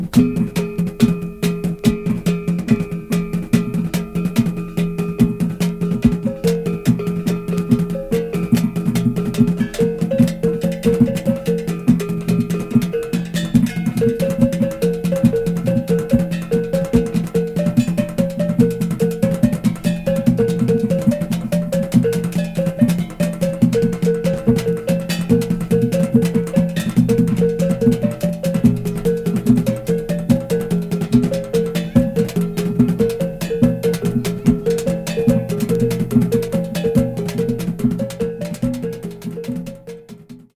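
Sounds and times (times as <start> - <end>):
Philippine gong: 0.2 - 40.4.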